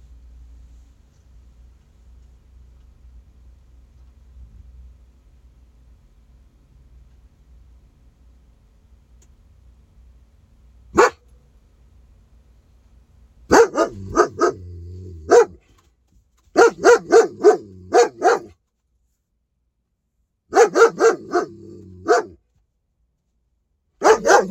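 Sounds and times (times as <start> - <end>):
domestic dog barking: 10.9 - 11.3, 13.5 - 15.6, 16.5 - 18.6, 20.5 - 22.4, 24.0 - 24.4.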